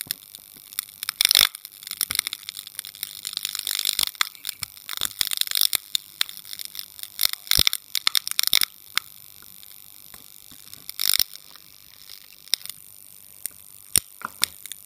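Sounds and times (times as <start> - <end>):
light flickering: 0.0 - 14.8.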